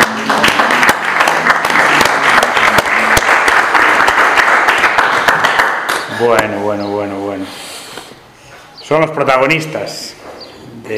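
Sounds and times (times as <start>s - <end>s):
audience applause: 0.0s - 6.5s
speech: 6.2s - 7.6s, 8.9s - 10.2s.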